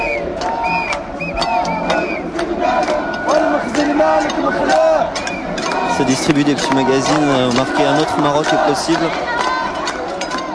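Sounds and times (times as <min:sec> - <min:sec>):
crowd of protesters shouting and chanting: 0:00.0 - 0:10.5
speech: 0:06.0 - 0:09.4.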